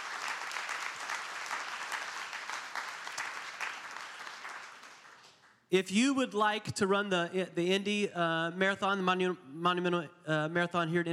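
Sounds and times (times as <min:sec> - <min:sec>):
audience applause: 0:00.0 - 0:05.5
speech: 0:05.7 - 0:11.1.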